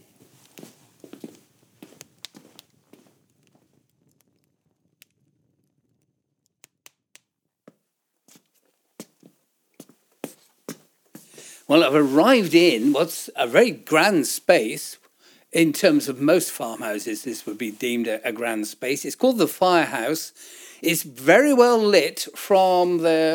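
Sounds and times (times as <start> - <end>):
footsteps climbing steps inside a farmhouse: 0.0 - 3.1
speech: 11.7 - 23.3.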